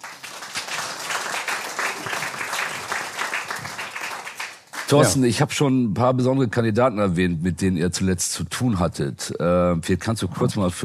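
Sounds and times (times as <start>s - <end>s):
audience applause: 0.0s - 5.2s
speech: 4.9s - 10.8s.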